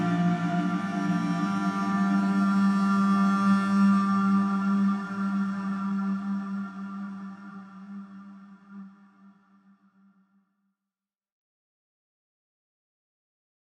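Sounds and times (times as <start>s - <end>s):
street cello playing: 0.0s - 6.2s.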